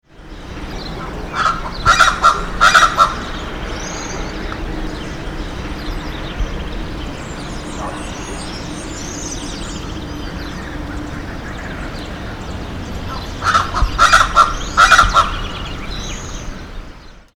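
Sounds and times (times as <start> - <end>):
faint bird sounds: 0.0 - 17.3
speckled chachalaca honking calls: 1.0 - 3.4, 13.1 - 15.6.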